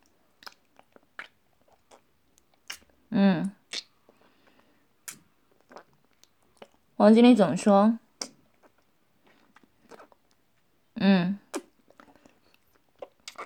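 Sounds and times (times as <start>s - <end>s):
crunchy chewing over breakfast: 0.0s - 3.0s, 3.7s - 6.8s, 8.2s - 10.4s, 11.5s - 13.4s
speech: 7.0s - 8.0s.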